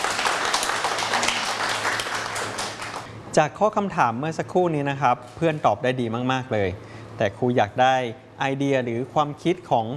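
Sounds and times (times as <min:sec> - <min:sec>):
classroom applause for a classmate: 0:00.0 - 0:03.1
speech: 0:03.4 - 0:09.9.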